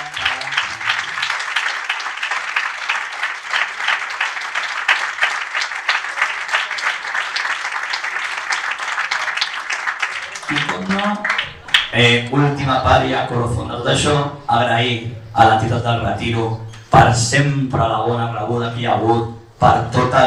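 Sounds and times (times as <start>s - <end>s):
audience applause: 0.0s - 11.9s
speech: 12.0s - 20.2s.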